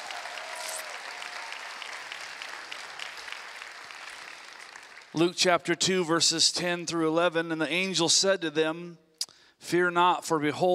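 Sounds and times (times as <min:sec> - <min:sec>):
audience applause: 0:00.0 - 0:05.2
speech: 0:05.1 - 0:09.0, 0:09.6 - 0:10.7.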